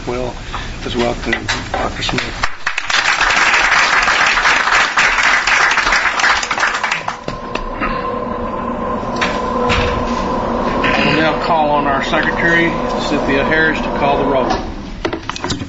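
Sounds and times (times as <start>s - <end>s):
speech: 0.1s - 2.5s, 12.1s - 14.6s
crowd applause: 2.4s - 7.6s
faint sustained hum: 3.1s - 15.5s.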